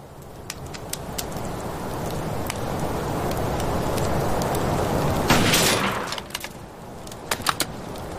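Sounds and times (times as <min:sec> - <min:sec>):
hissing crackling background: 0:00.0 - 0:08.1
rifle shots at a loudspeaker: 0:05.3 - 0:06.1.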